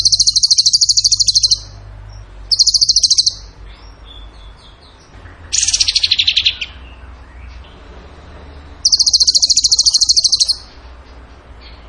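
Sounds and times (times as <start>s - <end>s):
bird song of a quick rattling trill: 0.0s - 1.8s, 2.5s - 3.6s, 5.5s - 6.9s, 8.8s - 10.7s
faint background hum: 0.0s - 11.8s.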